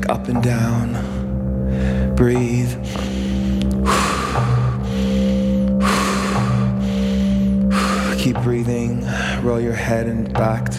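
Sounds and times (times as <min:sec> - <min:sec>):
sustained humming drone: 0:00.0 - 0:10.6
rhythmic drumming: 0:00.0 - 0:10.7
speech: 0:00.2 - 0:01.1, 0:02.2 - 0:03.1, 0:08.4 - 0:10.7.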